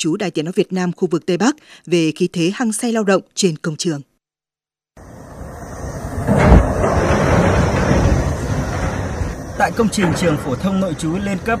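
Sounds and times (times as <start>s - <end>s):
speech: 0.0s - 4.1s, 9.6s - 11.5s
heavy construction site machinery engines: 5.0s - 11.5s.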